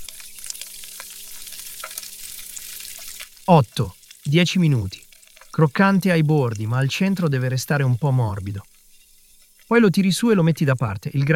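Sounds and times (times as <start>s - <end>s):
diced guanciale frying in a pan: 0.0s - 11.3s
speech: 3.5s - 8.7s, 9.7s - 11.3s.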